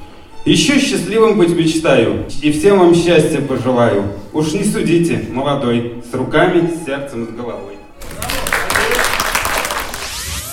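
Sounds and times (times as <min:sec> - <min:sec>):
speech: 0:00.4 - 0:07.8
crowd clapping: 0:08.0 - 0:10.5.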